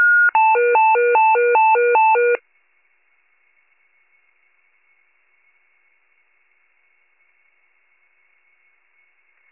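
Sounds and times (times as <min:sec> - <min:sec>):
fire pager alert: 0:00.1 - 0:02.4.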